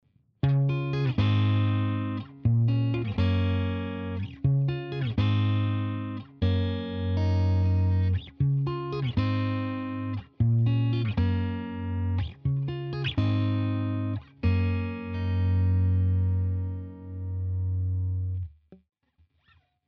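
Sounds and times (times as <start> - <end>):
processed riff: 0.4 - 18.5.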